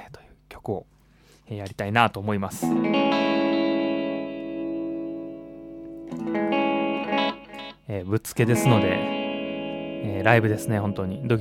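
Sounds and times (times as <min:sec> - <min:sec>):
speech: 0:00.7 - 0:03.3, 0:06.1 - 0:06.6, 0:07.9 - 0:09.2, 0:10.0 - 0:11.4
electric guitar strumming through a delay effect: 0:02.6 - 0:07.8, 0:08.4 - 0:11.4.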